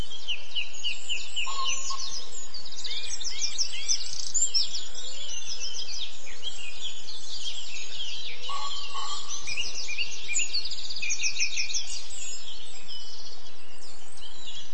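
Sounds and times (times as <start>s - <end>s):
dawn chorus birdsong at Dorset Beaver Project site: 0.0s - 14.7s.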